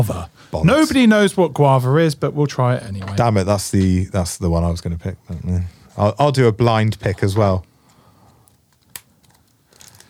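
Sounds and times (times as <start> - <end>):
speech: 0.0 - 7.7
disposable vape pod package snapping open by hand: 8.5 - 10.0.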